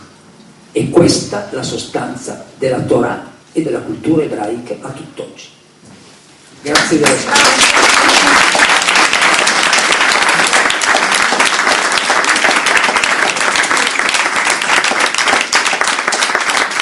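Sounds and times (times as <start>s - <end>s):
speech: 0.8s - 5.6s, 6.6s - 8.4s
audience applause: 6.7s - 16.8s.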